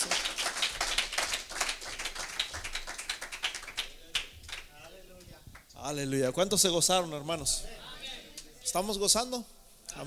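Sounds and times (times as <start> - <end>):
audience applause: 0.0 - 4.8
speech: 5.9 - 7.9, 8.7 - 10.0.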